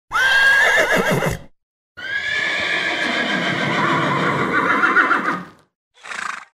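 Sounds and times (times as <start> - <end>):
horse whinnying: 0.1 - 6.5
horse snorting: 6.0 - 6.5.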